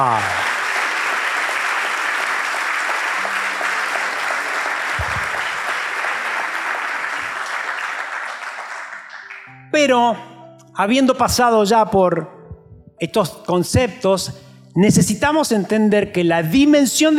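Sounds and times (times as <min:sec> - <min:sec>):
speech: 0:00.0 - 0:00.5, 0:09.8 - 0:12.4, 0:13.0 - 0:17.1
audience applause: 0:00.0 - 0:09.5.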